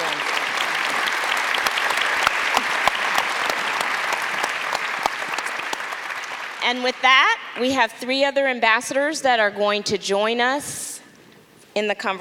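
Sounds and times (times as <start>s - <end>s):
crowd clapping: 0.0s - 7.4s
speech: 6.7s - 10.8s, 11.8s - 12.1s.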